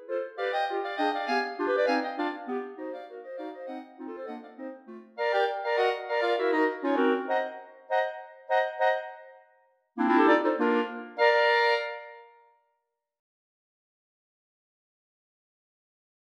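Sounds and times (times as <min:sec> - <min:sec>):
ragtime arrangement for clarinets: 0:00.2 - 0:09.3, 0:10.0 - 0:12.1.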